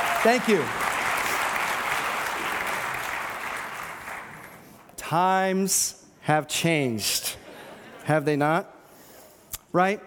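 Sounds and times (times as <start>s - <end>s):
audience applause: 0.0s - 4.7s
speech: 0.2s - 0.8s, 5.1s - 7.4s, 8.0s - 8.7s, 9.7s - 10.0s.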